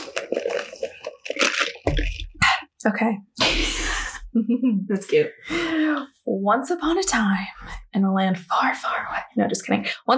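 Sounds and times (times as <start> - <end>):
person sipping iced coffee: 0.0 - 2.7
speech: 2.8 - 10.1.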